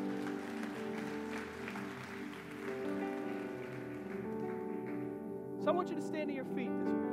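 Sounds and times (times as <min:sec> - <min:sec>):
crowd applauding: 0:00.0 - 0:05.9
speech: 0:05.6 - 0:07.0.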